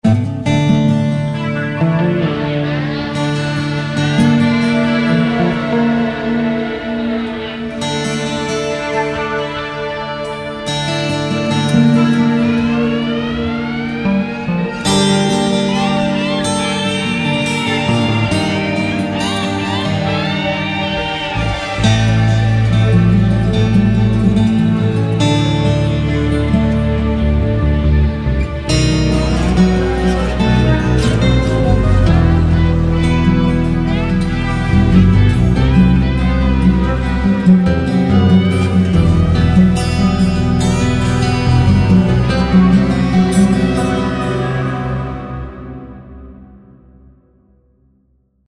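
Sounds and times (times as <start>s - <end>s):
guitar with orchestra: 0.0s - 47.6s.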